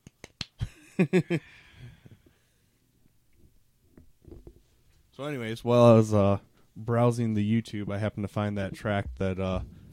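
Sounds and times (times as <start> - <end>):
golf clap: 0.0 - 0.7
speech: 1.0 - 1.6, 5.2 - 9.8.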